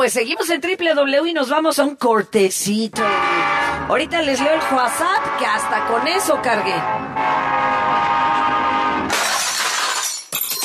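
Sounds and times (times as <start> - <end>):
speech: 0.0 - 7.3
loud sustained train horn: 3.0 - 9.1.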